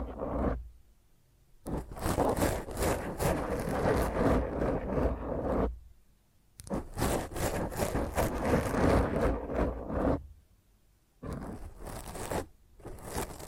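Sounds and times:
rough microphone scratch using hand nails: 0.0s - 0.7s, 1.7s - 5.8s, 6.6s - 10.3s, 11.2s - 13.4s.

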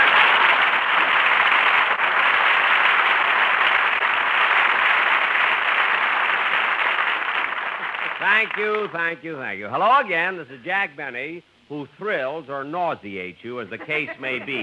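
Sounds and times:
studio audience applause: 0.0s - 9.1s
speech: 8.4s - 14.6s
laughter: 13.6s - 14.6s.

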